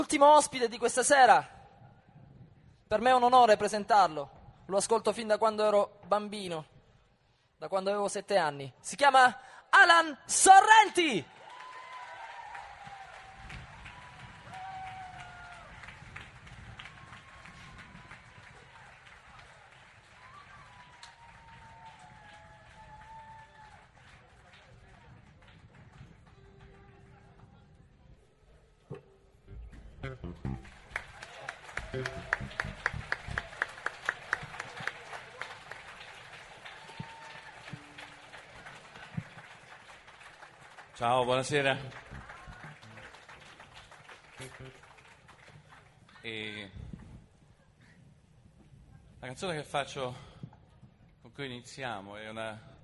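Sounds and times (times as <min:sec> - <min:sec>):
speech: 0:00.0 - 0:01.6, 0:02.9 - 0:06.7, 0:07.6 - 0:11.4, 0:41.0 - 0:42.0, 0:49.4 - 0:50.3, 0:51.4 - 0:52.7
audience applause: 0:11.3 - 0:27.4, 0:30.5 - 0:46.7.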